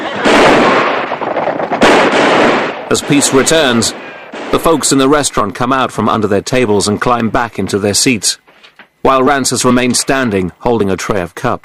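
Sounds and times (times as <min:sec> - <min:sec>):
pistol gunshots fired by a gang at townsfolk: 0:00.1 - 0:04.8
speech: 0:02.9 - 0:08.4, 0:09.0 - 0:11.6.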